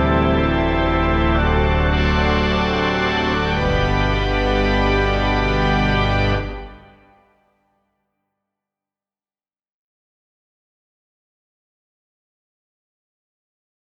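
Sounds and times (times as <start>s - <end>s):
organ music: 0.0s - 7.2s.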